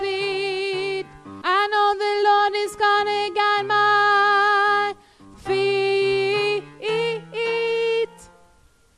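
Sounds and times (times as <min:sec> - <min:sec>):
alto voice part singing: 0:00.0 - 0:08.4.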